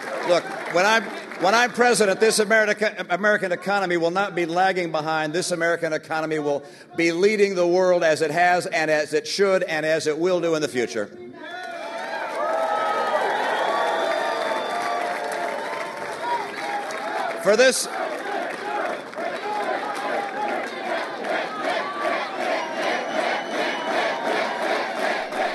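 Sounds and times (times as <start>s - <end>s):
large crowd cheering: 0.0s - 2.7s, 11.4s - 25.5s
speech: 0.3s - 11.6s, 17.4s - 18.0s
large crowd chanting a candidate's name: 17.8s - 25.5s.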